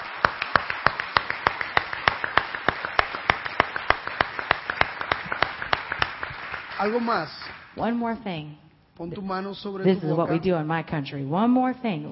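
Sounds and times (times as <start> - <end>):
group clapping together in time: 0.0 - 7.8
speech: 6.8 - 12.1.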